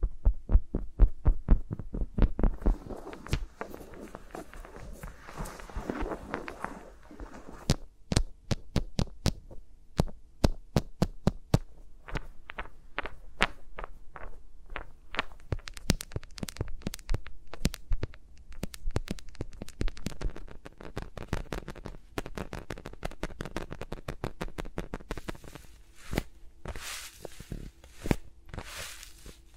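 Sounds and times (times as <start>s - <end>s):
fingers tapping and brushing around the microphones: 0.0s - 26.8s
bright rustling scratches: 2.4s - 7.8s, 25.0s - 29.5s.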